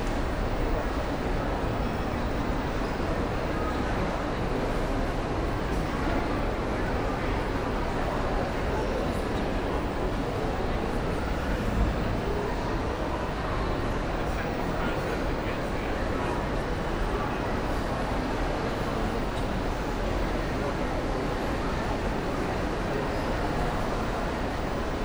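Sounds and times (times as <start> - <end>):
crowd in a large shopping mall: 0.0 - 25.0.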